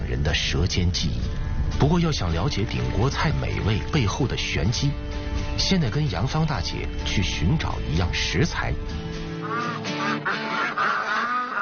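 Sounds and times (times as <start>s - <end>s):
speech: 0.3s - 10.4s
geese honking: 9.3s - 11.5s.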